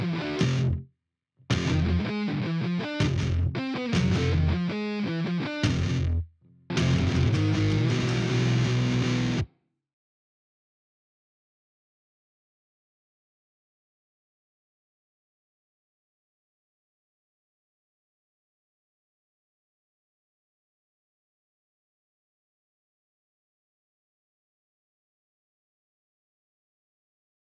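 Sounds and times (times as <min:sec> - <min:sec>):
guitars: 0:00.0 - 0:00.8, 0:01.5 - 0:09.5.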